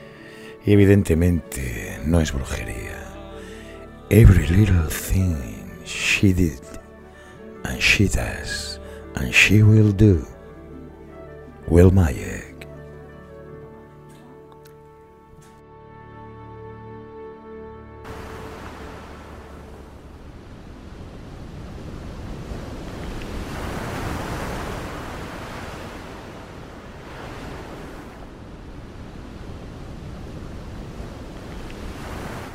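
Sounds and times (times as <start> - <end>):
ocean waves: 0.0 - 15.3, 15.9 - 32.5
sustained tonal music: 0.0 - 21.1
speech: 0.6 - 2.8, 4.1 - 6.7, 7.6 - 8.6, 9.2 - 10.4, 11.7 - 12.5.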